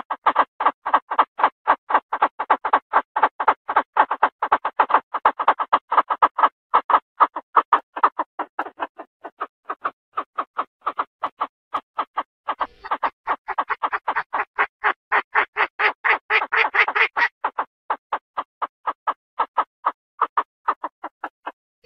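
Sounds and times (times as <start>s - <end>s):
Chinese francolin rasping clucking notes: 0.0s - 21.8s.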